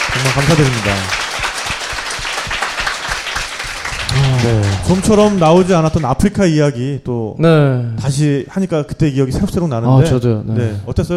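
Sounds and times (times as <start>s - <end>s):
audience applause: 0.0s - 6.3s
speech: 0.2s - 1.3s, 4.2s - 11.1s.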